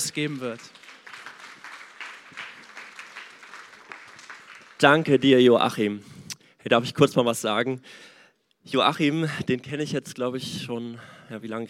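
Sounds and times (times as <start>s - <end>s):
audience applause: 0.0s - 5.4s
speech: 0.2s - 0.8s, 4.8s - 11.6s.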